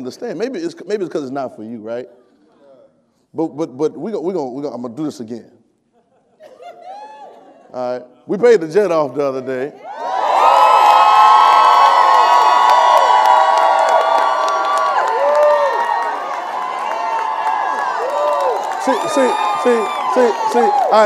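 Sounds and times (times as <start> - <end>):
speech: 0.0 - 2.2, 3.3 - 5.6, 7.7 - 9.9, 18.9 - 21.0
audience cheering and shouting: 9.8 - 21.0.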